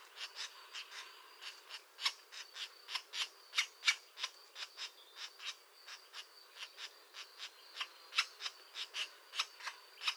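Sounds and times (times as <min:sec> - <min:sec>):
European green woodpecker clicks: 0:00.2 - 0:05.6, 0:06.6 - 0:10.1.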